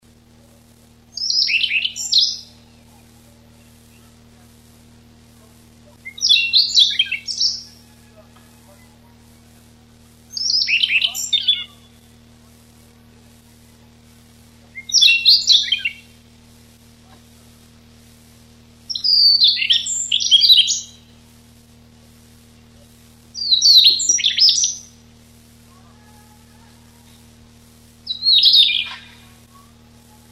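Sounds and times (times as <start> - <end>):
faint steady hum: 0.0 - 30.2
Siberian rubythroat warbling song: 1.2 - 4.2, 6.0 - 9.5, 10.3 - 12.2, 14.8 - 16.1, 18.9 - 21.1, 23.4 - 24.9, 28.1 - 29.4.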